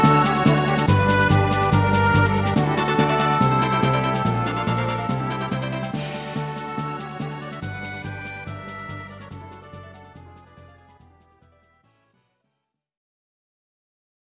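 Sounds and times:
victory jingle: 0:00.0 - 0:10.1.

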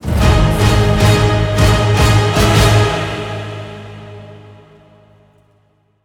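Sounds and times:
boss fight music: 0:00.0 - 0:04.6.

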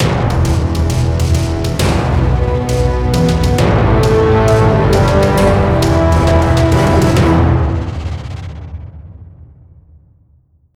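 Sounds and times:
music stings: 0:00.0 - 0:08.6.

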